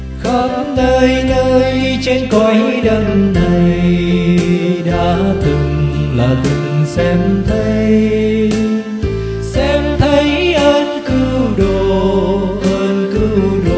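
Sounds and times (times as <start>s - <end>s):
soprano singing: 0.2s - 13.7s.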